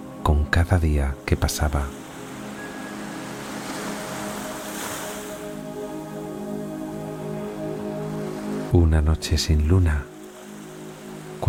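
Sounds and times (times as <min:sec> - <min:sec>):
speech: 0:00.3 - 0:02.0, 0:08.7 - 0:10.1
sea waves washing: 0:01.2 - 0:08.8, 0:10.0 - 0:11.4.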